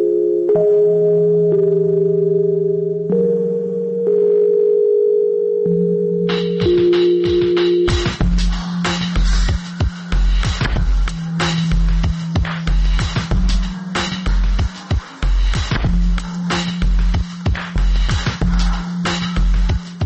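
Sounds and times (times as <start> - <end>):
mellow nasal Rhodes electric piano chords: 0.0 - 8.2
heavy steady drum beat with booming kicks and crisp hi-hats: 6.4 - 20.0.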